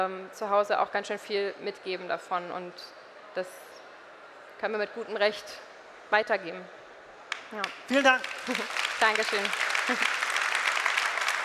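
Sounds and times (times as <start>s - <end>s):
speech: 0.0s - 3.7s, 4.6s - 6.8s, 7.5s - 10.2s
audience applause: 7.6s - 11.4s
laughter: 8.0s - 8.8s, 9.6s - 10.4s.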